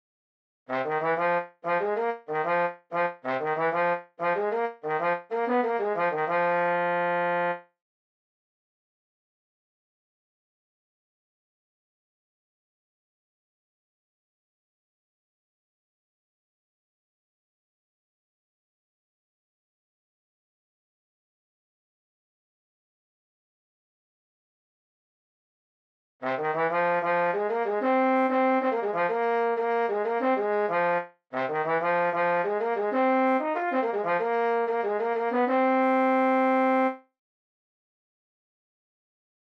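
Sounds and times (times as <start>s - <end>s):
trombone: 0.7s - 7.6s, 26.2s - 37.0s.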